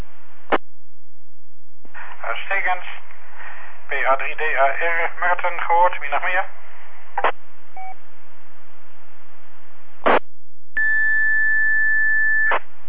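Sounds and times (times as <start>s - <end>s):
speech: 2.4s - 3.1s, 3.9s - 6.6s
beep tone on radio channel: 10.8s - 12.7s.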